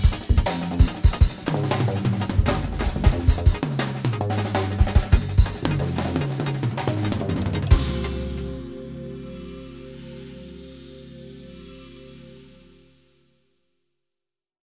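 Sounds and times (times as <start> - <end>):
drums: 0.0 - 9.2.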